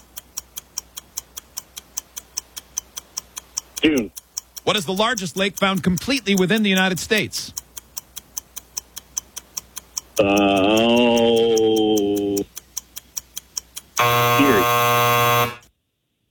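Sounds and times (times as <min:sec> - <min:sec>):
clock-like countdown ticks: 0:00.0 - 0:15.7
speech: 0:03.8 - 0:07.6, 0:10.2 - 0:11.0
game show buzzer: 0:14.0 - 0:15.7.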